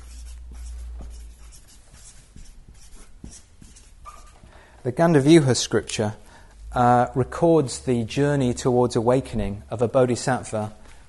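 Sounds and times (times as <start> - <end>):
writing scratching on a board: 0.0 - 4.5
speech: 4.8 - 6.2, 6.8 - 10.8.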